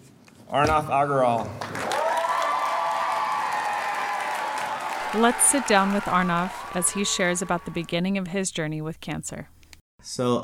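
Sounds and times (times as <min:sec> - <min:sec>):
speech: 0:00.5 - 0:01.9, 0:05.1 - 0:10.4
audience cheering: 0:01.8 - 0:08.6.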